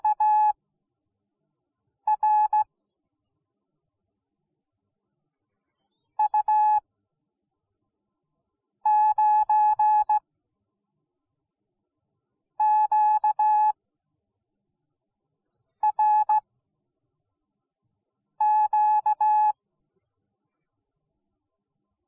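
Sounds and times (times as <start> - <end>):
morse code beeps: 0.0 - 0.5, 2.1 - 2.6, 6.2 - 6.8, 8.9 - 10.2, 12.6 - 13.7, 15.8 - 16.4, 18.4 - 19.5.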